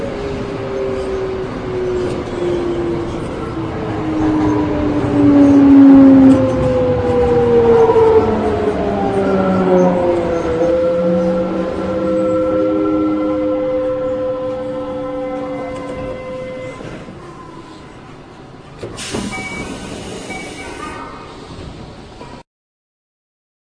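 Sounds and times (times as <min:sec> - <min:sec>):
Mitsubishi VVVF train inverter motor whine: 0:00.0 - 0:17.8.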